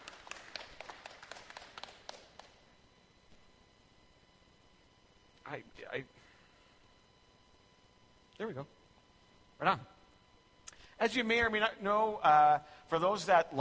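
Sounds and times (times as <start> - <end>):
audience clapping to welcome a speaker: 0.0 - 2.6
speech: 5.5 - 6.3, 8.4 - 8.8, 9.6 - 10.0, 11.0 - 13.5.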